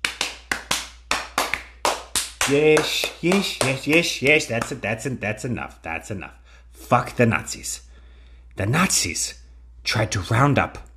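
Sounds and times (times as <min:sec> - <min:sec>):
audience clapping: 0:00.0 - 0:04.8
speech: 0:02.5 - 0:07.9, 0:08.6 - 0:10.9.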